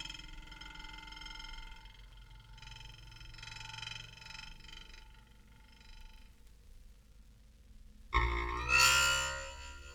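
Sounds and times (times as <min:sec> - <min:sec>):
glass rod vibrating: 0:08.2 - 0:09.9.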